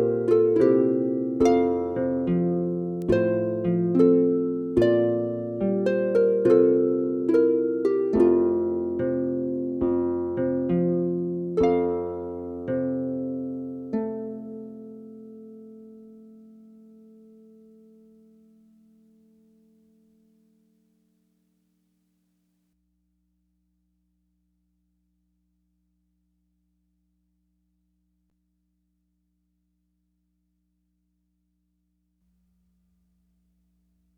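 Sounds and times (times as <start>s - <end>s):
solo lever or pedal harp playing an anglaise: 0.0s - 20.0s.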